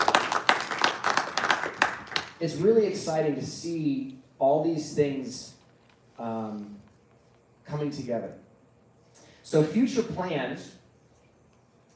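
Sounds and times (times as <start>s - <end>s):
audience round of applause: 0.0s - 2.4s
speech: 2.4s - 5.6s, 6.2s - 6.9s, 7.7s - 8.4s, 9.5s - 10.8s.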